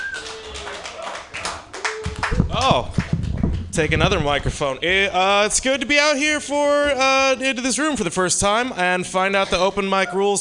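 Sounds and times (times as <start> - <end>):
audience cheering and shouting: 0.0 - 3.4
open mic comedy audience clapping: 0.0 - 4.5
speech: 2.6 - 3.0, 3.8 - 10.3.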